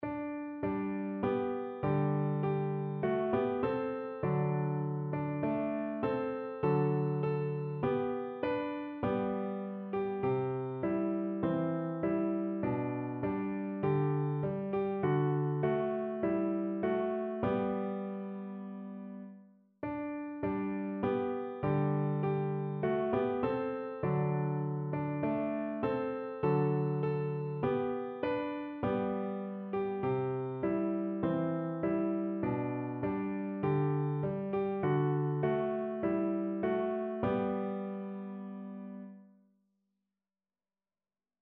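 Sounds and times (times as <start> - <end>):
easy piano: 0.0 - 39.4.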